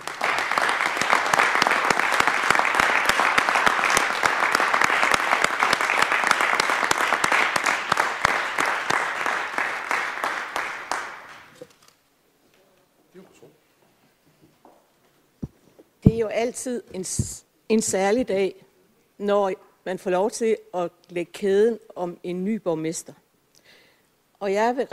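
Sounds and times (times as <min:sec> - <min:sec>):
roomful of people applauding: 0:00.0 - 0:11.6
speech: 0:16.3 - 0:18.6, 0:19.2 - 0:23.2, 0:24.4 - 0:24.9.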